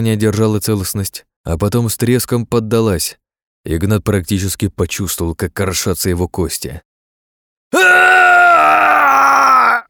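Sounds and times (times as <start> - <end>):
speech: 0.0 - 6.9, 7.7 - 8.2
man screaming in pain and hatred: 7.7 - 9.8.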